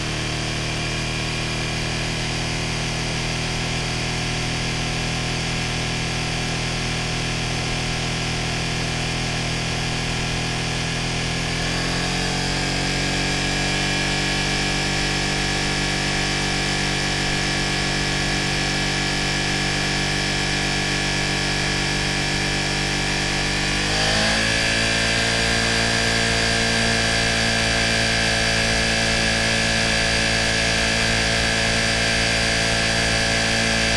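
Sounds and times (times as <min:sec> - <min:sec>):
KTM Super Duke R motorcycle engine starting, holding constant rpm and shutting off: 0:00.0 - 0:33.9.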